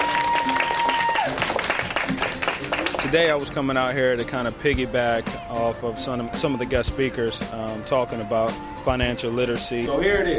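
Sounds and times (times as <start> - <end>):
audience clapping at a speaking event on financial literacy: 0.0 - 3.3
speech: 3.1 - 10.3.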